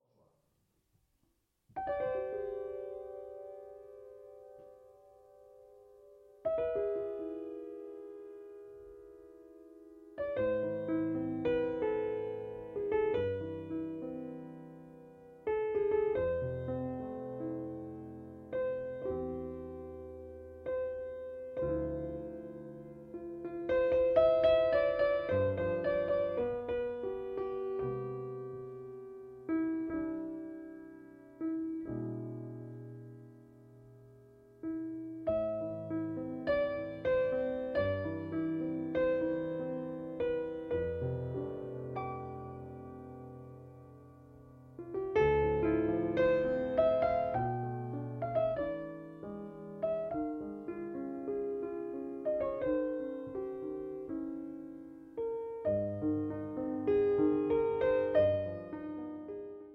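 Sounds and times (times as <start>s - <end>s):
piano sketches: 0.0s - 59.7s.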